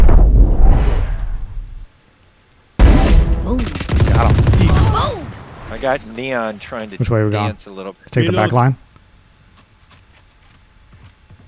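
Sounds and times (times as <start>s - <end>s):
video game grenade-like explosion: 0.0s - 1.8s, 2.8s - 6.2s
video game gunfire: 2.8s - 5.4s
speech: 5.8s - 8.8s.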